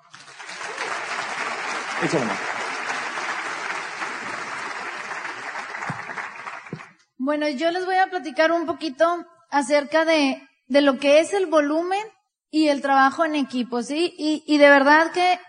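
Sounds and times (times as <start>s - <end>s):
loud audience applause: 0.0s - 7.0s
speech: 2.0s - 2.5s, 7.3s - 15.4s.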